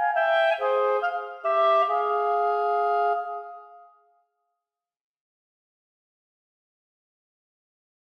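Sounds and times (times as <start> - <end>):
clarinet duet playing a minuet: 0.0 - 3.8.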